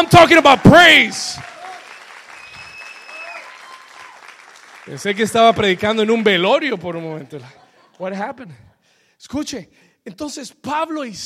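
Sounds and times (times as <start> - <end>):
speech: 0.0 - 1.5, 4.9 - 8.6, 9.2 - 11.2
audience giving loud applause: 0.0 - 7.6
laughter: 5.5 - 8.8.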